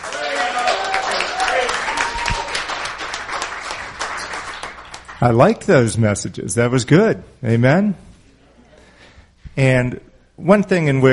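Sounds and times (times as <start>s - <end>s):
audience cheering: 0.0s - 4.7s
speech: 5.2s - 8.1s, 9.6s - 11.1s.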